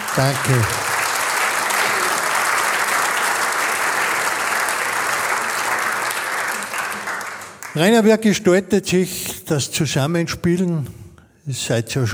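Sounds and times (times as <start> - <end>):
audience applause: 0.0 - 7.9
speech: 0.2 - 0.8, 7.8 - 12.1.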